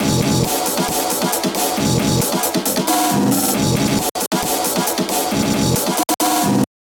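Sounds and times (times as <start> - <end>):
drum beat: 0.0 - 6.6.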